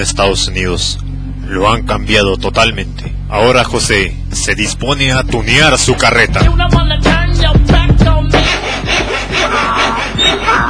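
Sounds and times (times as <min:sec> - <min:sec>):
speech: 0:00.0 - 0:10.6
sawing: 0:08.0 - 0:10.6.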